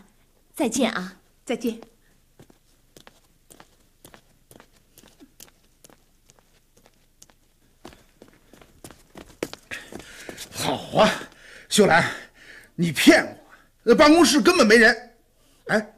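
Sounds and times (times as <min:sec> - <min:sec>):
speech: 0:00.6 - 0:01.9, 0:10.9 - 0:12.2, 0:12.8 - 0:15.1, 0:15.7 - 0:15.9
footsteps of a person walking away: 0:01.2 - 0:11.5.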